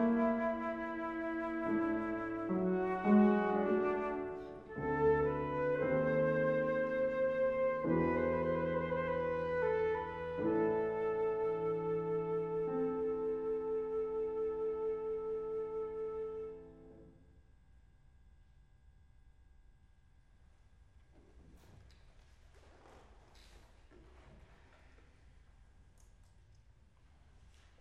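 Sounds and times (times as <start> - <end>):
flute: 0.0 - 17.2
piano: 0.0 - 17.4.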